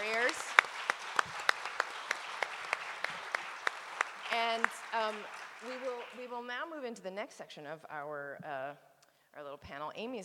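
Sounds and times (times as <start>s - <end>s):
audience applause: 0.0s - 6.4s
speech: 6.4s - 10.2s.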